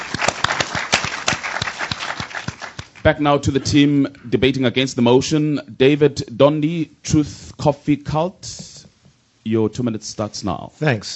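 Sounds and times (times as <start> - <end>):
debate audience applause: 0.0 - 3.0
speech: 3.0 - 8.8, 9.5 - 11.1.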